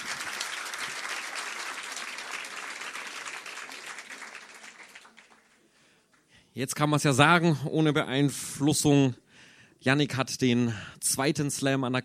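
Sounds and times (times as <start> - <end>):
audience applause: 0.0 - 5.7
speech: 6.6 - 9.2, 9.8 - 12.0.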